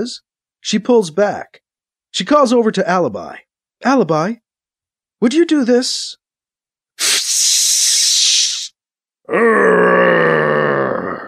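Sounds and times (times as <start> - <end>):
speech: 0.0 - 4.4, 5.2 - 6.2, 9.3 - 10.2
sharp steady hiss: 7.0 - 8.7
man growling while injecting himself: 9.3 - 11.2.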